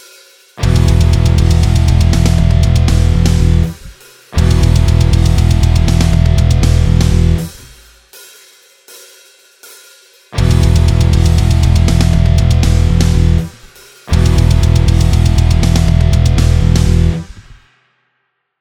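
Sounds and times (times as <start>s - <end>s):
practice backing track music: 0.6s - 7.9s, 10.4s - 17.6s.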